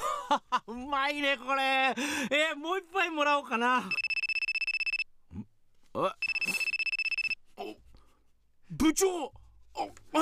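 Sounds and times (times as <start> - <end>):
speech: 0.3 - 4.0, 5.4 - 6.6, 8.8 - 10.1
telephone ringing: 3.9 - 5.0, 6.2 - 7.4.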